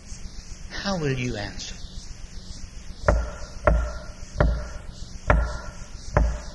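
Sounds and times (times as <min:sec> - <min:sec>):
speech: 0:00.9 - 0:01.8
knocking on a door: 0:03.0 - 0:06.5.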